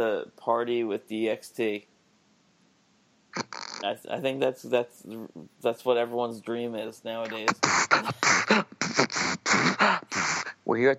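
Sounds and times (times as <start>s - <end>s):
speech: 0.0s - 1.9s, 3.4s - 10.9s
attempted beatboxing into the microphone: 3.4s - 3.8s, 7.3s - 10.7s.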